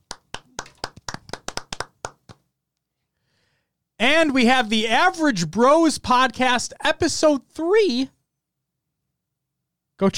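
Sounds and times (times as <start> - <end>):
hand clapping: 0.0 - 2.5
speech: 4.2 - 8.2, 10.0 - 10.1.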